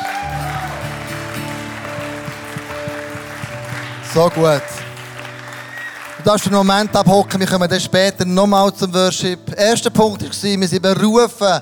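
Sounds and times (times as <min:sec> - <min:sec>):
audience applause: 0:00.0 - 0:08.5
sustained keyboard chords: 0:00.3 - 0:11.4
speech: 0:04.1 - 0:04.8, 0:06.2 - 0:11.6.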